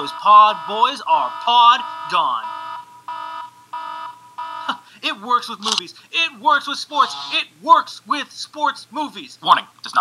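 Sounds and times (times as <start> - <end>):
speech: 0.0 - 2.5, 5.0 - 9.9
electronic alarm bursts: 0.0 - 4.8, 7.0 - 7.4.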